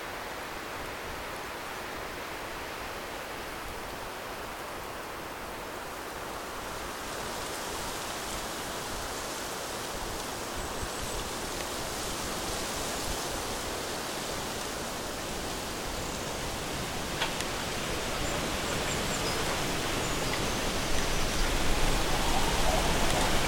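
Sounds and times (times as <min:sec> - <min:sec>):
wind rushing through a bamboo forest: 0:00.0 - 0:23.4
sharp crackle of leaves: 0:13.7 - 0:23.4.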